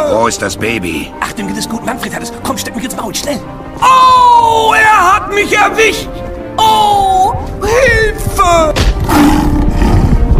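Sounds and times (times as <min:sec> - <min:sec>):
speech: 0:00.1 - 0:09.6
tiger roaring: 0:09.1 - 0:10.3.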